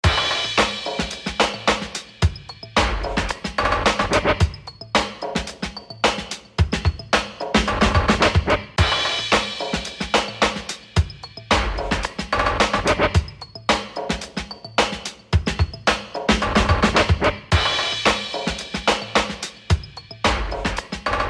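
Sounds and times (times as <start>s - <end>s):
beats: 0.0s - 21.2s.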